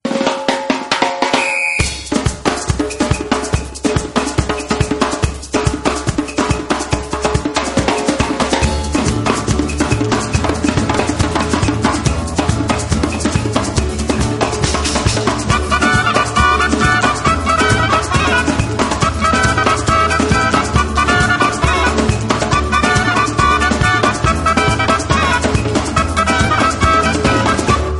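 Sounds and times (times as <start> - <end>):
djembe drumming: 0.0 - 27.9.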